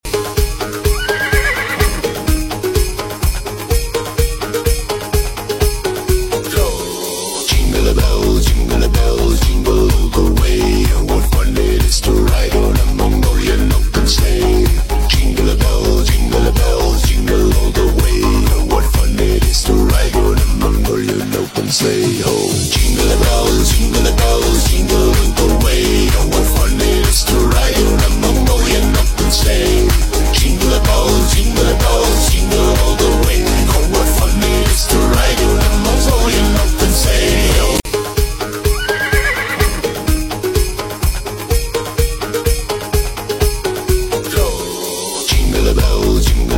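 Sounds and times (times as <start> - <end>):
Mongolian style music: 0.1 - 11.4, 12.3 - 46.4.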